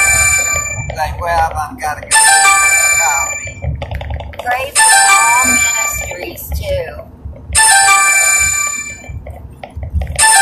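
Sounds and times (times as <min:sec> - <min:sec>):
phone ringing with incoming call: 0:00.0 - 0:01.3, 0:02.0 - 0:06.7, 0:07.6 - 0:09.2, 0:10.0 - 0:10.4.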